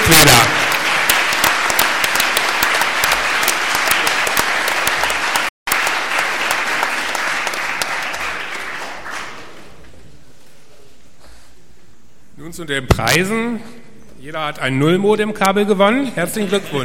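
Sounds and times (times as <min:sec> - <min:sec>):
audience applause: 0:00.0 - 0:09.8
speech: 0:12.6 - 0:16.8.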